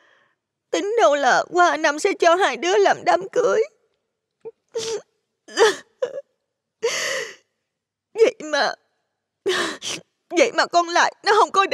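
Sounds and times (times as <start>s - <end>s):
speech: 0.8s - 3.8s, 4.4s - 6.2s, 8.4s - 8.8s, 9.5s - 11.7s
woman acting out sobbing hiccups: 4.5s - 7.1s, 9.5s - 10.1s.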